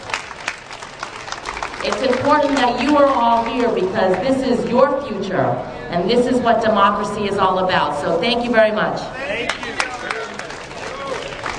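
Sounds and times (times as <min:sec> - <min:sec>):
crowd applause at a gathering after a speech about democracy: 0:00.0 - 0:05.0, 0:09.2 - 0:11.5
crowd murmur: 0:00.0 - 0:11.5
speech: 0:01.8 - 0:09.6.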